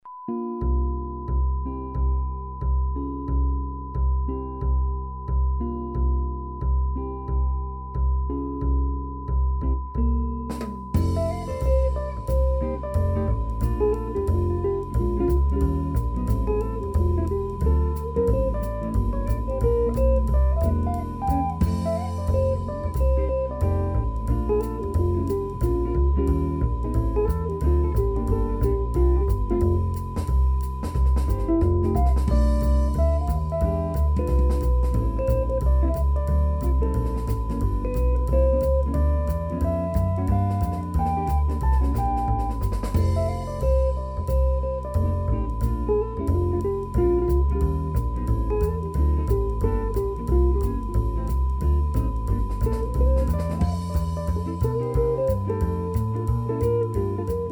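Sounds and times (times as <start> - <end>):
guitar music: 0.3 - 57.5.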